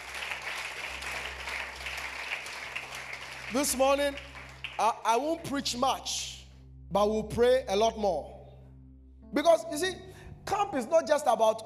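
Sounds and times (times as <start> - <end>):
audience clapping hands: 0.0 - 5.2
speech: 3.5 - 6.3, 6.9 - 8.3, 9.3 - 11.6.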